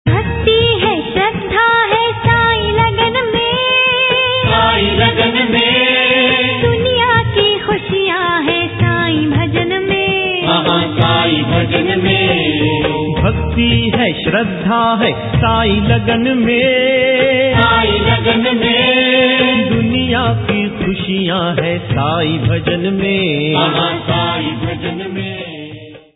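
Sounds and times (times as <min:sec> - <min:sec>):
Sai Baba bhakti devotional song ringtone: 0:00.1 - 0:26.1.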